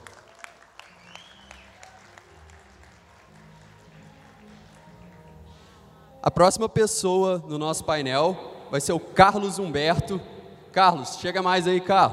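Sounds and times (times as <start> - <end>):
audience applause: 0.0 - 5.4
speech: 6.2 - 12.1.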